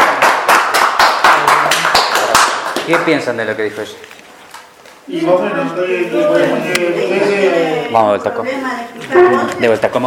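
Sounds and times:
hands clapping as applause in a group talk session: 0:00.0 - 0:03.3
speech: 0:02.9 - 0:04.1, 0:05.1 - 0:10.0.

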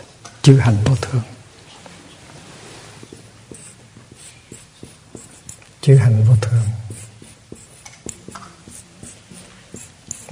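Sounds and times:
speech: 0:00.4 - 0:01.3, 0:05.9 - 0:06.8
Chinese characters being written by hand: 0:02.4 - 0:10.2.

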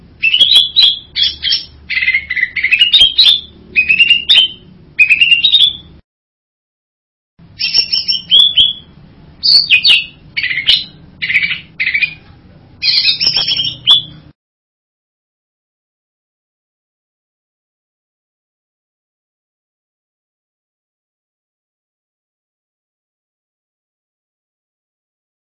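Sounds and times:
bird buzzy whistled song: 0:00.2 - 0:06.0, 0:07.4 - 0:12.2, 0:12.8 - 0:14.4.

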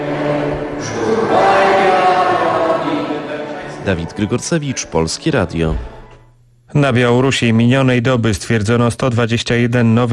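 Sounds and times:
crowd singing wartime insurgent songs after mass: 0:00.0 - 0:05.0
speech: 0:03.9 - 0:06.0, 0:06.7 - 0:10.1.

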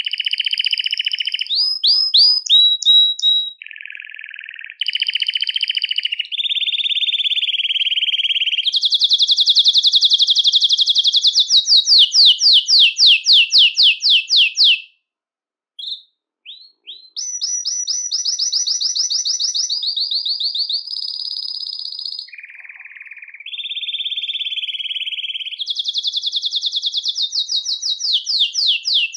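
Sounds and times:
Belgian canary giving short sharp high chirps: 0:00.0 - 0:15.0, 0:15.8 - 0:29.1.

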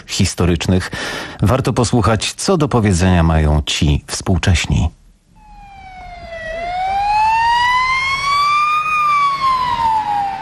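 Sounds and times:
speech: 0:00.1 - 0:05.0
ambulance siren wailing: 0:05.4 - 0:10.4.

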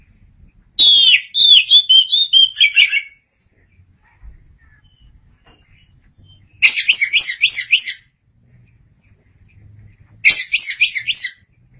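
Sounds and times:
Oriental magpie-robin singing whistled notes: 0:00.8 - 0:03.2, 0:04.7 - 0:05.1, 0:05.7 - 0:08.1, 0:10.2 - 0:11.5.

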